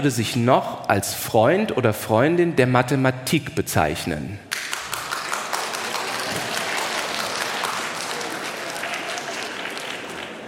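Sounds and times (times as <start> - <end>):
speech: 0.0 - 4.5
audience clapping: 4.5 - 10.4.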